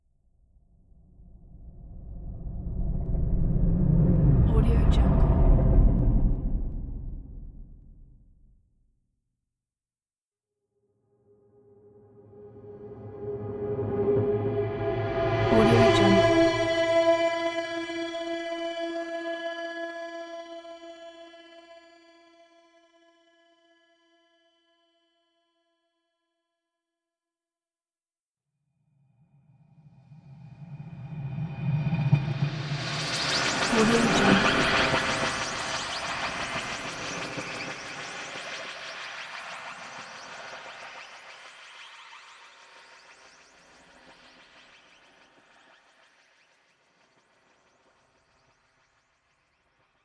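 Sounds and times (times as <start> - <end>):
unearthly sci-fi atmosphere: 1.1 - 8.2, 11.9 - 17.6, 30.3 - 45.8.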